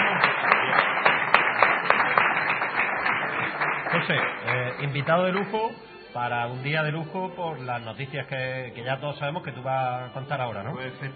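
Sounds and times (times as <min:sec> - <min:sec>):
audience applause: 0:00.0 - 0:05.6
speech: 0:04.1 - 0:11.1.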